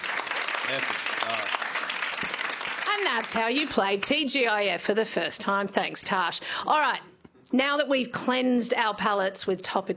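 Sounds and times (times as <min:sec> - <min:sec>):
audience clapping for a contestant on a comedy news quiz: 0:00.0 - 0:04.2
speech: 0:00.7 - 0:02.3, 0:02.9 - 0:09.9.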